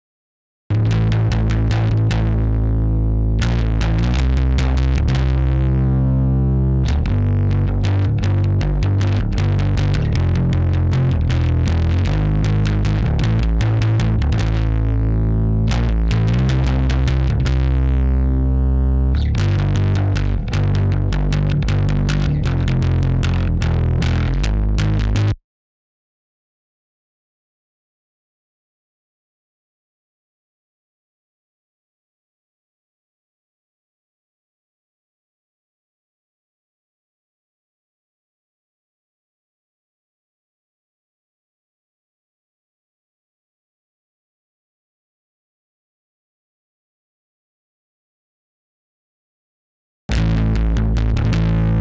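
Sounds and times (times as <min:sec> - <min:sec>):
bass: 0:00.7 - 0:25.4, 0:50.1 - 0:51.7.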